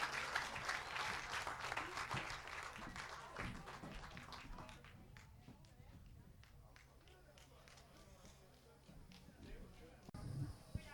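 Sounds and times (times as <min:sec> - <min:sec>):
audience applause for a sister act: 0:00.0 - 0:04.9.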